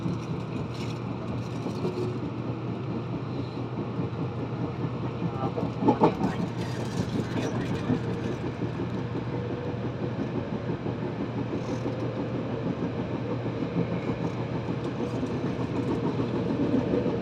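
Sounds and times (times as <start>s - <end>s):
rattles and clatter: 0.0s - 2.5s, 5.6s - 9.0s, 14.2s - 16.9s
Meitetsu 6500 series local train rumble: 0.0s - 17.2s.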